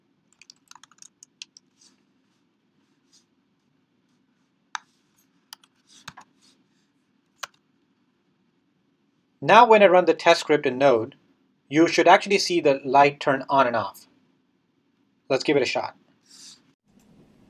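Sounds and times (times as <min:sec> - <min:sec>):
code typed on a computer keyboard: 0:00.3 - 0:01.7
speech: 0:09.4 - 0:14.1, 0:15.3 - 0:16.0.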